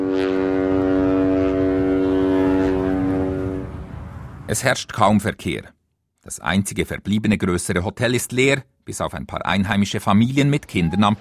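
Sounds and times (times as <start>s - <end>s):
ship's horn blast: 0.0s - 4.4s
speech: 4.5s - 11.1s.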